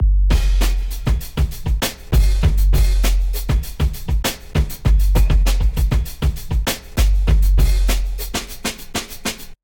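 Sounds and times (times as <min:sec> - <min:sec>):
drum breakbeats: 0:00.0 - 0:09.6.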